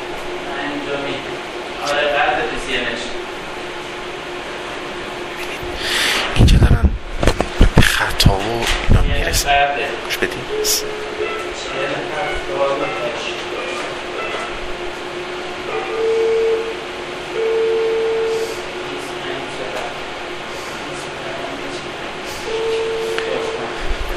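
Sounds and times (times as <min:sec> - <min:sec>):
cooling fan whirring: 0:00.0 - 0:24.1
steady tones: 0:00.0 - 0:24.1.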